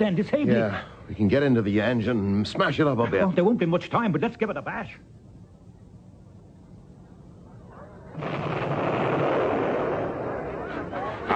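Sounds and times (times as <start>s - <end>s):
speech: 0.0s - 5.1s
distant battle gunfire: 8.2s - 10.5s
distant battle explosions: 8.2s - 10.9s.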